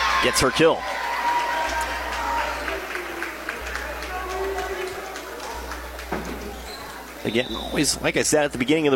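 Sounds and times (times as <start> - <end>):
claps and shouts: 0.0 - 6.1
crowd roar in a volleyball gym: 0.0 - 7.7
speech: 0.2 - 1.0, 7.2 - 8.9.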